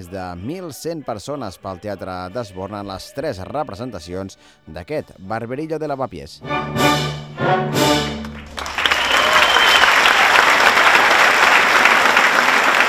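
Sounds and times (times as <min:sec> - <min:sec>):
speech: 0:00.0 - 0:07.5
theatre audience applause: 0:08.0 - 0:12.8.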